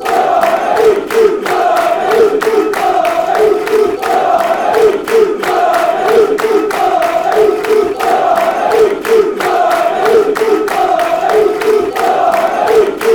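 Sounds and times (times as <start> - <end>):
football crowd chanting: 0.0 - 13.1.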